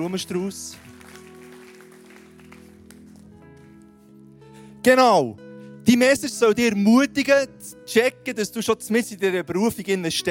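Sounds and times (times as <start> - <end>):
speech: 0.0 - 0.9, 4.8 - 10.2
audience applause: 0.7 - 3.2.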